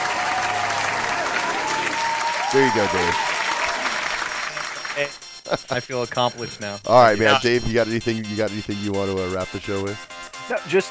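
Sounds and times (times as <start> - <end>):
applause: 0.0 - 5.2
speech: 2.5 - 3.3, 5.0 - 10.9.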